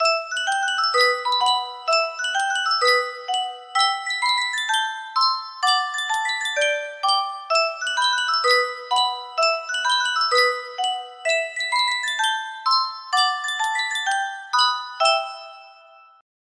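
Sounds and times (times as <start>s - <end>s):
Yunsheng custom tune music box melody: 0.0s - 16.2s.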